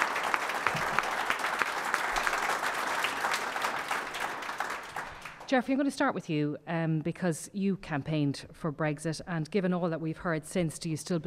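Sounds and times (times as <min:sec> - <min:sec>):
audience round of applause: 0:00.0 - 0:05.5
speech: 0:05.5 - 0:11.2.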